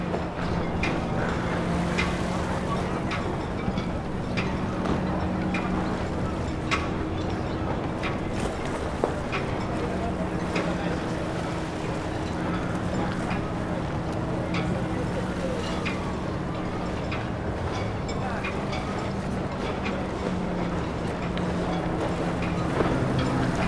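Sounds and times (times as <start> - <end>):
seaside harbour ambience: 0.0 - 23.6.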